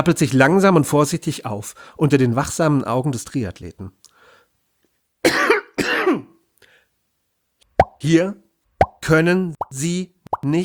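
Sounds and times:
speech: 0.0 - 4.0, 5.2 - 6.2, 8.0 - 8.4, 9.0 - 10.6
coughing fit: 5.3 - 6.3.

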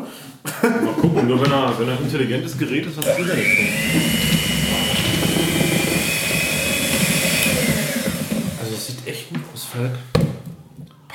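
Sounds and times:
speech: 0.6 - 4.6, 9.8 - 10.1
electric hand mixer running: 3.0 - 8.9.

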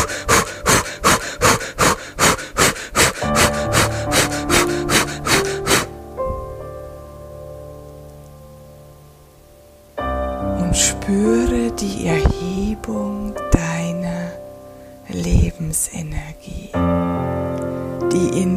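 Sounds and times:
rapid breathing in and out with arms raised: 0.0 - 6.0
soft sustained tonal music: 0.0 - 18.5.

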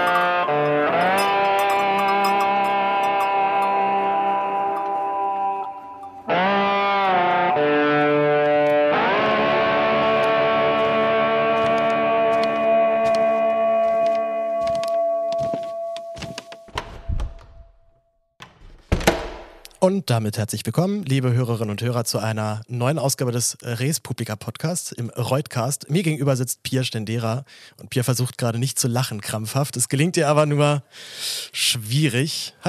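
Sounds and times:
podcast intro music: 0.0 - 16.5
speech: 19.9 - 32.6.

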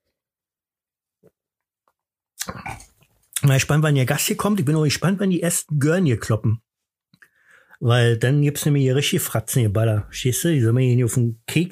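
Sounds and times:
person sipping a drink at a Halloween party: 2.4 - 3.1
speech: 3.4 - 6.7, 7.8 - 11.6.

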